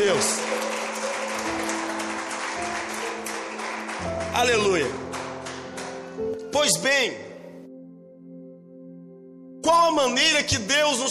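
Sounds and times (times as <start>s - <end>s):
crowd applause: 0.0s - 6.2s
speech: 4.4s - 5.1s, 6.6s - 7.2s, 9.7s - 11.0s.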